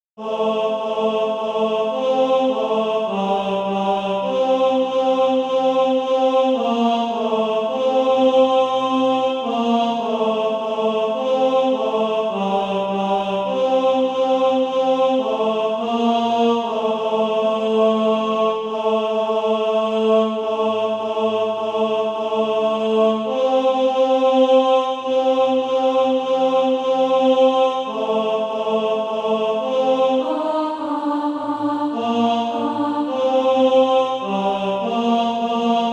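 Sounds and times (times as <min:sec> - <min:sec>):
tenor singing: 0:00.2 - 0:35.9.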